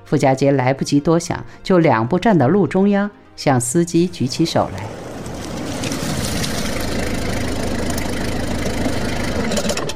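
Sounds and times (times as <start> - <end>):
speech: 0.1 - 5.0
small truck engine pulling up: 3.9 - 9.9.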